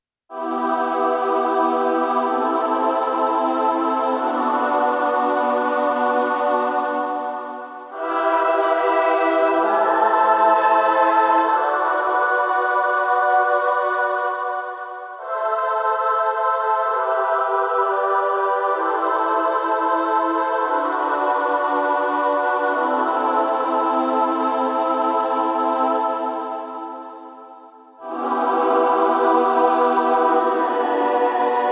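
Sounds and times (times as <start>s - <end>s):
vocals: 0.3s - 31.6s.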